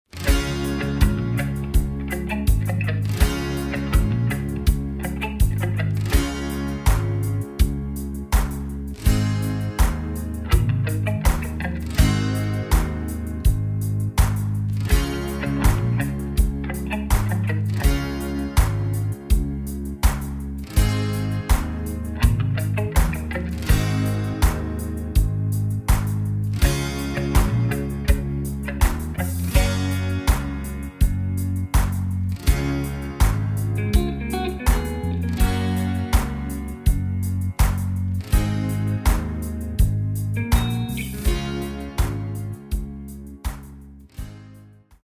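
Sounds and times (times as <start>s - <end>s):
song changing key from Db to Gb: 0.1s - 44.6s.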